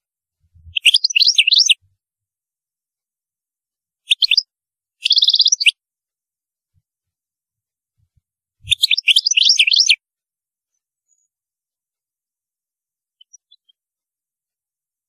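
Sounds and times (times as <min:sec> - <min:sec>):
European goldfinch song: 0:00.0 - 0:01.9, 0:04.0 - 0:05.8, 0:08.0 - 0:10.0, 0:13.1 - 0:14.0.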